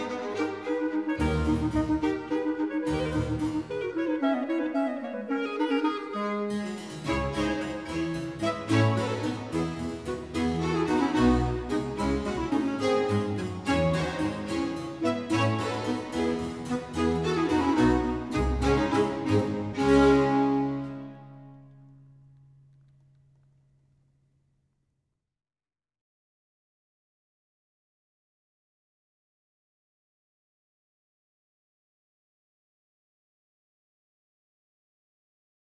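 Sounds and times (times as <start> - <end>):
baroque concerto for two chalumeaux, vivace movement: 0.0 - 22.0.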